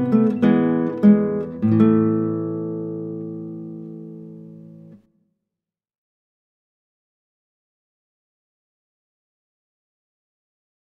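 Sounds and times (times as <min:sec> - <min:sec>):
classical guitar: 0:00.0 - 0:05.1.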